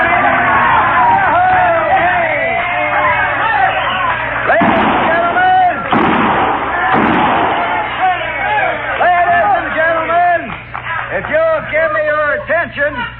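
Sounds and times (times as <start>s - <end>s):
crowd talking in a saloon: 0.0s - 13.1s
six-gun shots fired inside a saloon: 4.5s - 8.4s.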